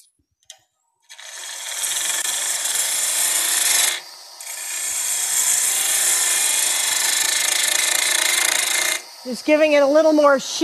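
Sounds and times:
bowl gouge cutting wood on a running lathe: 0:01.1 - 0:09.3
speech: 0:09.3 - 0:10.6.

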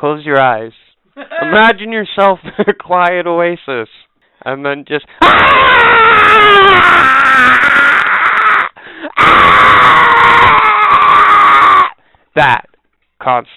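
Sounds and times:
speech: 0:00.0 - 0:07.8, 0:09.1 - 0:10.5, 0:12.4 - 0:13.5
person imitating a baby's wailing scream: 0:05.2 - 0:11.9
gasp for breath: 0:08.8 - 0:09.2.

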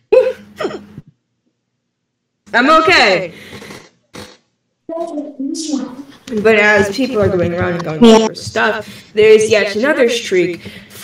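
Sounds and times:
person hiccuping: 0:00.0 - 0:01.0
speech: 0:02.5 - 0:03.5, 0:05.0 - 0:11.0.

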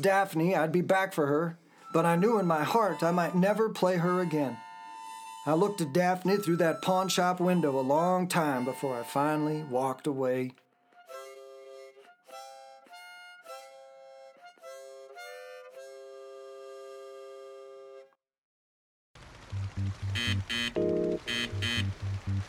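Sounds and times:
speech: 0:00.0 - 0:04.6, 0:05.4 - 0:10.6
navigation device buzzer: 0:20.2 - 0:22.4.

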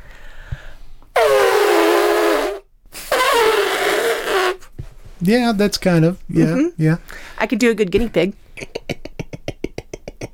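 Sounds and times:
person imitating elephant trumpeting: 0:01.2 - 0:04.6
speech: 0:05.2 - 0:08.9.

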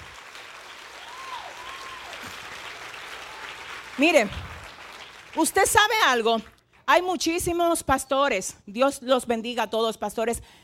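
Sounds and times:
audience applause: 0:00.0 - 0:06.0
speech: 0:04.0 - 0:04.5, 0:05.4 - 0:10.6.

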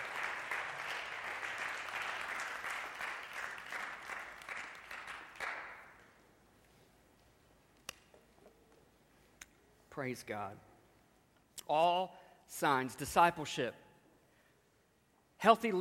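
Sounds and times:
audience applause: 0:00.0 - 0:05.9
speech: 0:10.0 - 0:10.7, 0:11.7 - 0:13.8, 0:15.4 - 0:15.8.

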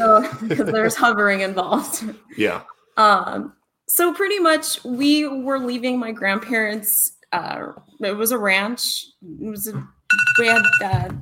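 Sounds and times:
laughter: 0:00.0 - 0:01.2
speech: 0:00.0 - 0:11.2
phone alarm going off: 0:10.1 - 0:11.2.

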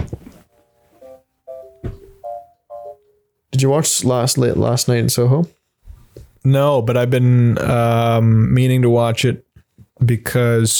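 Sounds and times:
phone ringing with incoming call: 0:00.5 - 0:03.2
speech: 0:03.6 - 0:05.6, 0:06.4 - 0:09.4, 0:10.0 - 0:10.7.

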